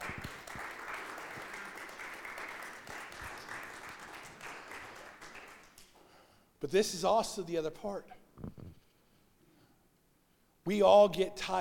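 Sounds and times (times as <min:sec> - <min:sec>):
audience round of applause: 0:00.0 - 0:05.8
speech: 0:06.6 - 0:08.6, 0:10.7 - 0:11.5.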